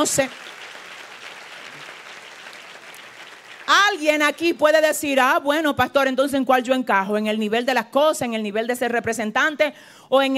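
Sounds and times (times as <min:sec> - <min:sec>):
speech: 0:00.0 - 0:00.6, 0:03.9 - 0:10.3
audience applauding: 0:00.0 - 0:04.9.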